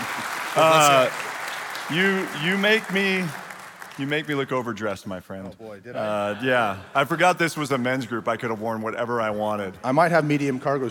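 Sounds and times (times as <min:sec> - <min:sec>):
men's group audience clapping to welcome a speaker: 0:00.0 - 0:05.1
speech: 0:00.6 - 0:01.2, 0:01.9 - 0:03.4, 0:04.0 - 0:10.9.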